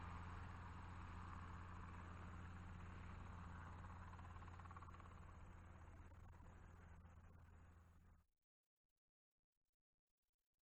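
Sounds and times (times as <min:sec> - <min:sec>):
helicopter flyby: 0:00.1 - 0:06.7.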